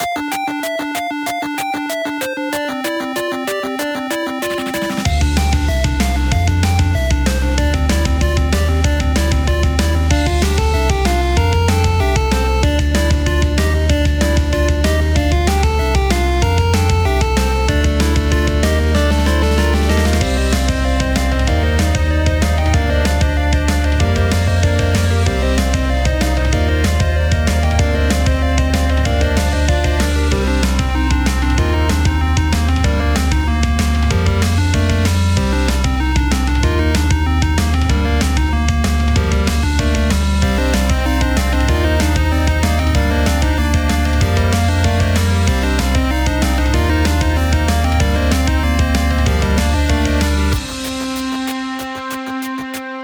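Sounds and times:
music beats: 0.0s - 53.0s.

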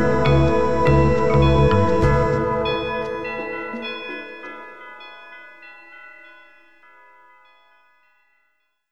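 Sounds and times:
sea shanty: 0.0s - 5.0s.

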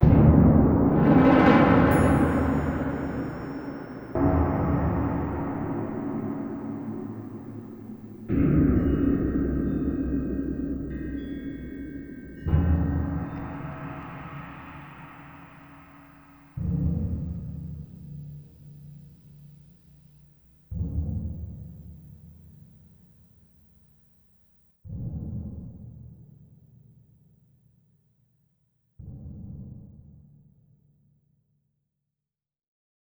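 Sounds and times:
short scary sound: 0.0s - 16.6s.

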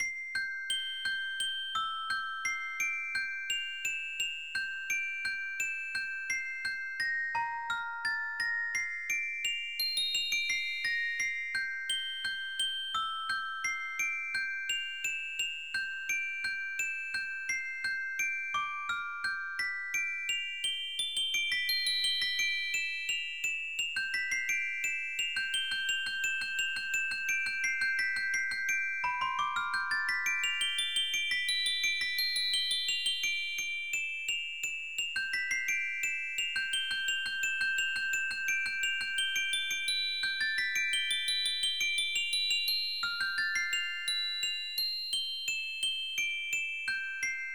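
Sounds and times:
music box: 0.0s - 47.5s.

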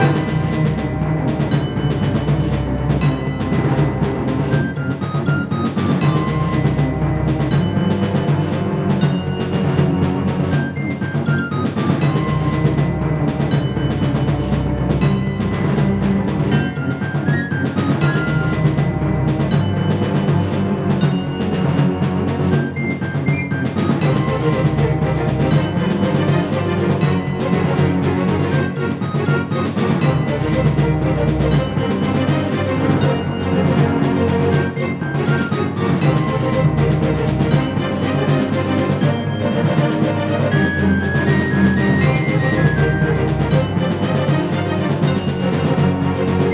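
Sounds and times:
boss duel game music: 0.0s - 46.5s.

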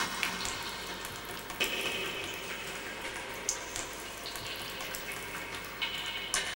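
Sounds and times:
sewer water dripping: 0.0s - 6.5s.

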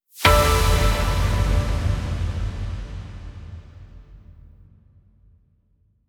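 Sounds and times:
awakening jingle: 0.3s - 2.8s.

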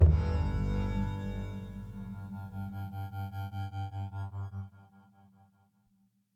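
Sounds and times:
transition music segment: 0.0s - 3.7s.

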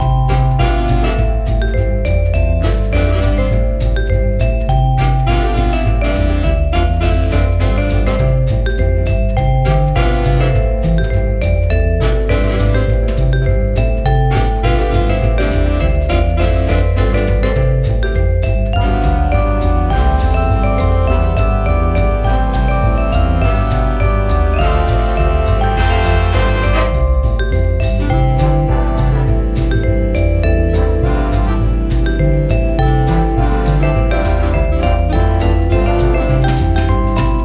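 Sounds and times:
game menu music: 0.0s - 37.4s.

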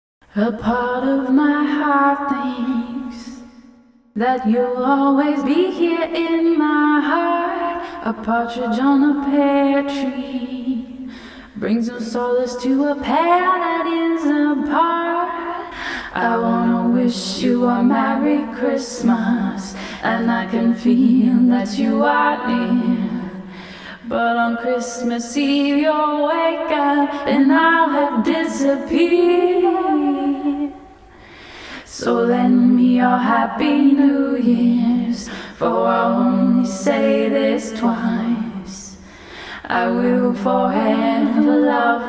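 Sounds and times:
a cappella singing: 0.2s - 42.0s.

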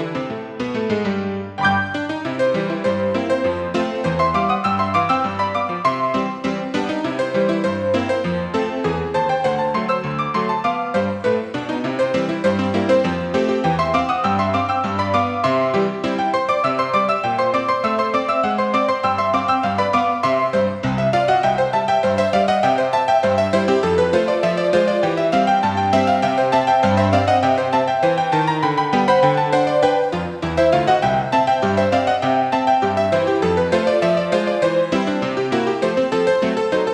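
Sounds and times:
player piano: 0.2s - 36.9s.

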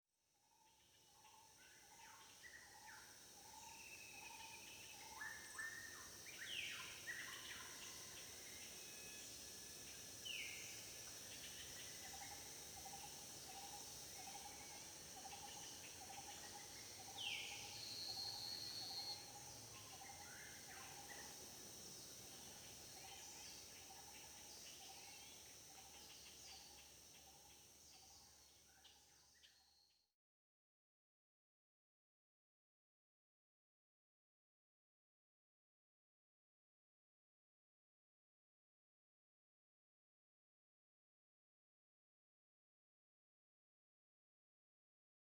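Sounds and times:
outdoor daytime ambience: 1.8s - 29.4s.

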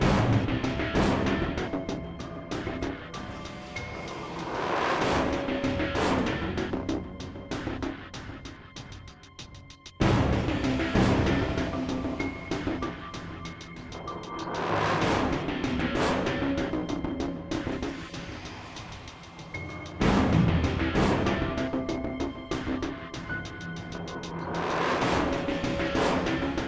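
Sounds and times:
tension music: 0.0s - 26.6s.

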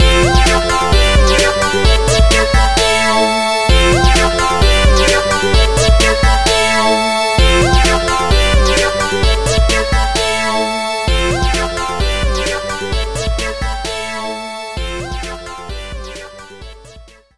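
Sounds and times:
8-bit style level clear jingle: 0.0s - 14.0s.

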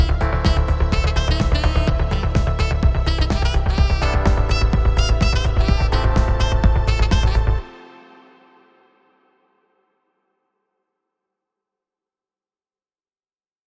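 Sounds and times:
battle music: 0.0s - 7.7s.

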